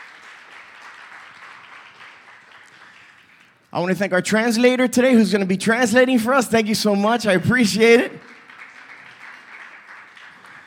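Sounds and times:
audience applause: 0.0s - 3.7s, 6.6s - 10.6s
speech: 3.7s - 8.4s.

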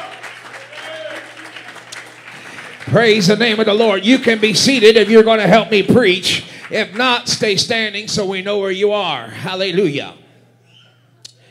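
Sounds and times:
audience clapping hands in praise: 0.0s - 8.0s
speech: 2.8s - 10.2s.

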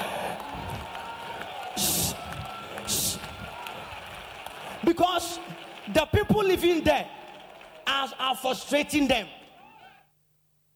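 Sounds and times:
audience clapping hands: 0.0s - 8.7s
speech: 4.9s - 7.2s, 7.9s - 9.4s.

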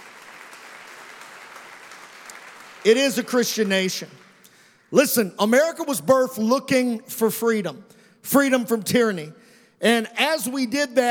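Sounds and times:
audience hand clapping in response to a preacher's call: 0.0s - 4.3s
speech: 2.8s - 4.2s, 4.9s - 11.0s.

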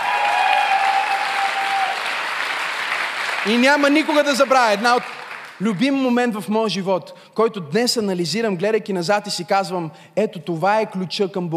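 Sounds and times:
faint high tone or cheer: 0.0s - 3.3s
audience applause: 0.0s - 5.9s
speech: 3.4s - 11.5s.

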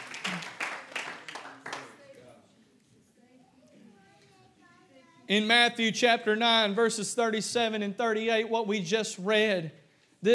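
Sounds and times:
audience clapping hands: 0.0s - 2.1s
speech: 5.3s - 10.3s.

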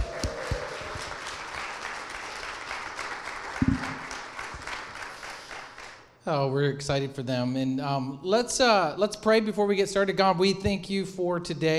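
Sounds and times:
person whooping: 0.0s - 1.2s
crowd applauding: 0.0s - 6.1s
speech: 3.6s - 3.9s, 6.3s - 11.7s.

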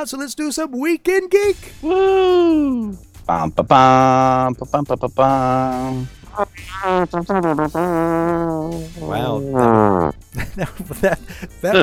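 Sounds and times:
speech: 0.0s - 11.8s
voice imitating a trombone-like fart noise: 1.6s - 10.2s, 11.6s - 11.8s
laughter: 10.4s - 11.8s.

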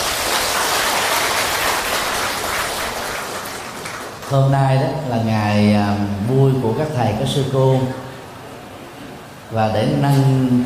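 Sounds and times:
audience applause: 0.0s - 4.4s
speech: 4.3s - 8.0s, 9.5s - 10.6s.

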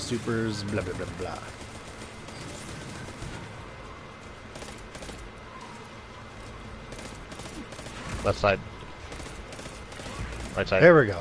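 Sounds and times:
gunfire in a video game shootout: 0.0s - 5.9s, 6.8s - 11.2s
speech: 0.1s - 1.6s, 8.2s - 8.8s, 10.6s - 11.2s.

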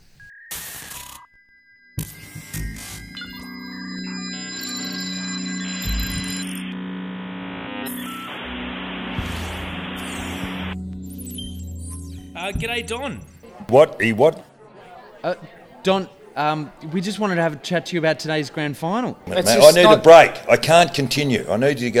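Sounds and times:
telephone tones and beeps while a call is placed: 0.2s - 8.6s
low hum: 2.0s - 13.4s
buzzing noise: 2.0s - 13.5s
speech: 12.4s - 14.5s, 15.2s - 21.9s.

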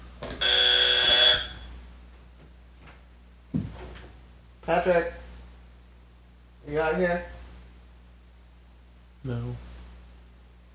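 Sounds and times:
quiz game-show buzzer: 0.4s - 1.7s
speech: 4.7s - 5.2s, 6.9s - 7.3s.

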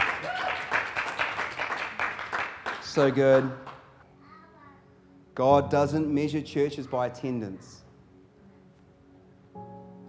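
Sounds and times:
audience applause: 0.0s - 3.9s
speech: 2.9s - 3.7s, 5.4s - 7.8s.

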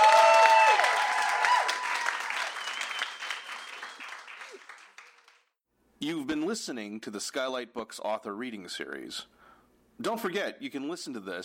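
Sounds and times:
audience applause: 0.0s - 5.5s
speech: 6.0s - 9.4s, 10.0s - 11.4s.

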